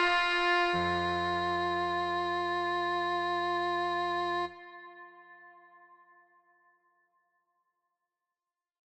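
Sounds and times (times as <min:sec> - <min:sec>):
MIDI music: 0:00.0 - 0:05.1.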